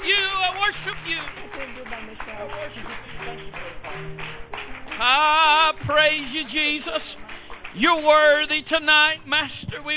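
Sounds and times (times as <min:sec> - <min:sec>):
audience hand clapping: 0:00.0 - 0:09.9
speech: 0:07.8 - 0:09.9.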